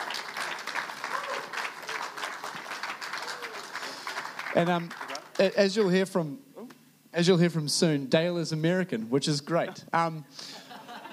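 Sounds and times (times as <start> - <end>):
big enthusiastic audience applause: 0.0 - 5.5
speech: 4.5 - 6.5, 7.1 - 10.5.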